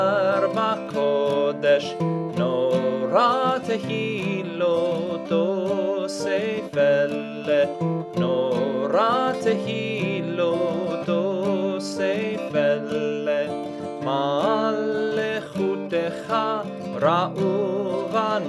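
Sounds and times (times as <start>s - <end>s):
low voice singing a Hebrew prayer: 0.0s - 18.4s.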